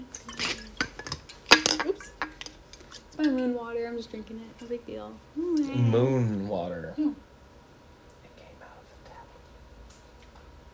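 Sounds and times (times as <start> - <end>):
glass and dishware clinking: 0.0 - 3.0
speech: 3.2 - 7.3.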